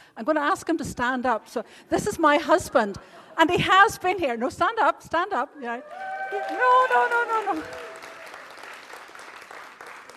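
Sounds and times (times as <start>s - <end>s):
speech: 0.2s - 7.8s
audience clapping: 5.9s - 10.1s.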